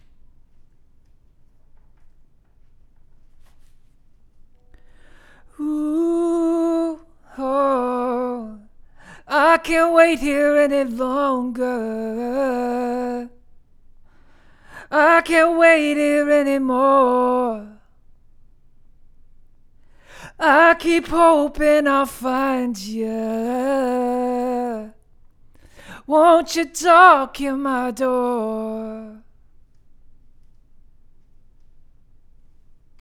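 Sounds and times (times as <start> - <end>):
vocals: 4.7 - 18.2, 19.8 - 30.6.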